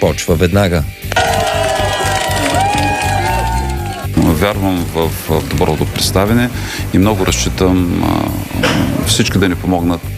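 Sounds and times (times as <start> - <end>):
speech: 0.0 - 1.4, 4.4 - 10.1
crowd cheering: 1.1 - 4.1.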